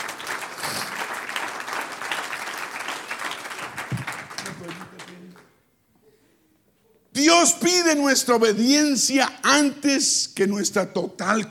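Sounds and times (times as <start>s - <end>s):
audience applause: 0.0s - 5.5s
speech: 7.4s - 11.4s.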